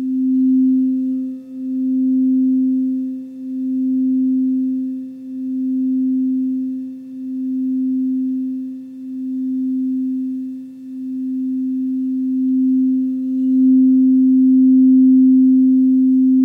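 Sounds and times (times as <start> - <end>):
crystal or Tibetan bowl ringing: 0.0 - 16.4.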